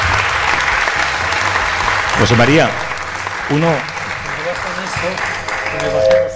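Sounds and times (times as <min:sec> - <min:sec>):
audience applause: 0:00.0 - 0:06.3
speech: 0:02.2 - 0:02.9, 0:03.5 - 0:03.9, 0:05.0 - 0:06.3.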